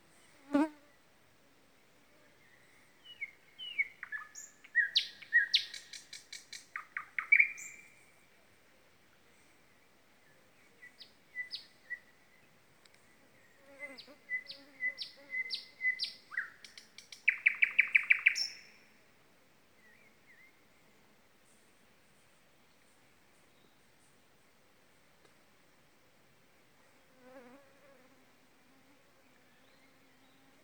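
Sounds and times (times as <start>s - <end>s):
common nightingale singing: 3.0s - 7.9s, 10.8s - 12.1s, 14.3s - 18.7s.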